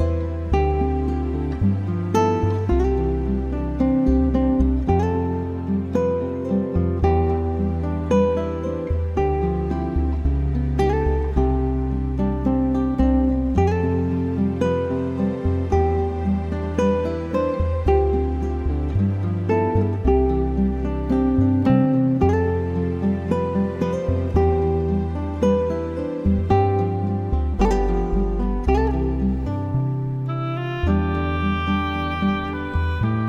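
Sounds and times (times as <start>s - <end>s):
acoustic praise instrumental music: 0.0s - 33.2s.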